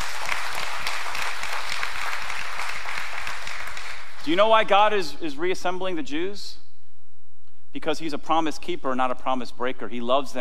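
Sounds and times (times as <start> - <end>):
audience clapping: 0.0 - 4.7
speech: 4.2 - 6.6, 7.7 - 10.4.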